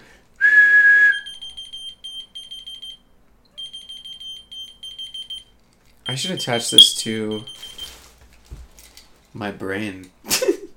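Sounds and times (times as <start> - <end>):
whistle blast: 0.4 - 1.6
key finder beeping: 1.3 - 3.0, 3.6 - 7.8
speech: 6.1 - 7.8, 9.4 - 10.5.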